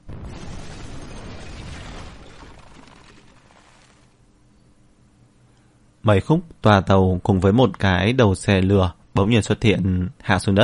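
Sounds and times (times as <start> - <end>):
earth-shaking explosion: 0.0 - 4.2
speech: 6.0 - 10.6.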